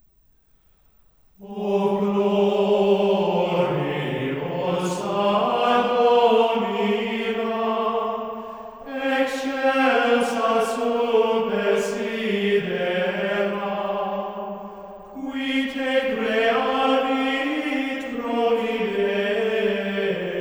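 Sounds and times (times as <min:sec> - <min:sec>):
hymn singing in mode two: 0:01.4 - 0:20.3.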